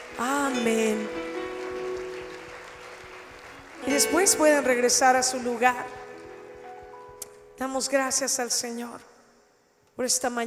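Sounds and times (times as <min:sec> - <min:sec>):
audience applause: 0:00.0 - 0:07.0
speech: 0:00.2 - 0:01.3, 0:03.9 - 0:06.0, 0:07.6 - 0:09.1, 0:10.0 - 0:10.4.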